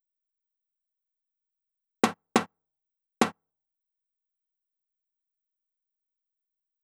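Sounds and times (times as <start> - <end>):
tom drum loop at 140 BPM: 2.0 - 2.5.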